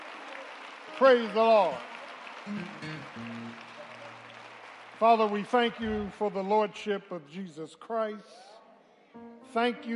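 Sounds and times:
audience hand clapping: 0.0s - 6.9s
speech: 1.0s - 3.3s, 5.0s - 8.5s, 9.2s - 9.9s.

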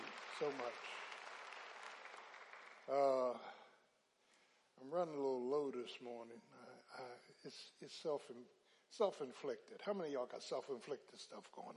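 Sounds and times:
audience clapping: 0.0s - 3.5s
speech: 0.4s - 1.0s, 2.9s - 3.6s, 4.8s - 11.7s.

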